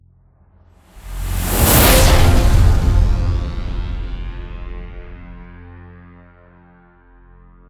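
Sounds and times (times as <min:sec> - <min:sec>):
transition end sound: 0:00.9 - 0:05.9.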